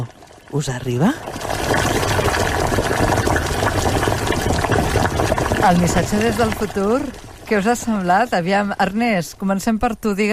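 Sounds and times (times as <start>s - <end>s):
speech: 0.0s - 2.2s, 2.8s - 3.2s, 5.6s - 10.3s
water boiling in a cooking pot: 0.0s - 10.3s.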